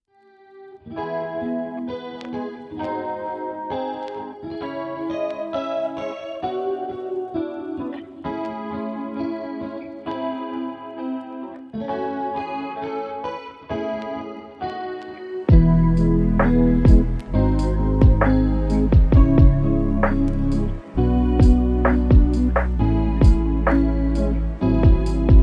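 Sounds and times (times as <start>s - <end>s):
instrumental lofi music: 0.1s - 25.4s.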